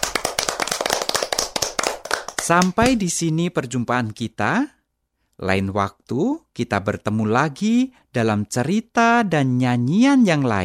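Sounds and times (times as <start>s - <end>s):
group of children clapping: 0.0s - 3.0s
speech: 2.4s - 4.8s, 5.4s - 10.6s.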